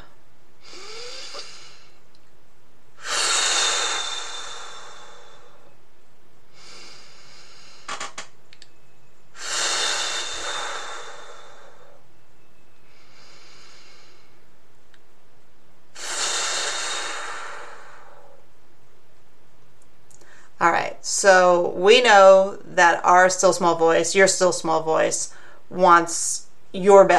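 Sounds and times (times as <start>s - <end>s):
slow deep breathing in through the nose and out through the mouth: 0.0s - 2.1s, 3.0s - 5.8s, 6.5s - 8.2s, 9.3s - 14.6s, 15.9s - 18.6s, 20.2s - 20.6s, 25.3s - 25.7s
speech: 21.0s - 27.1s.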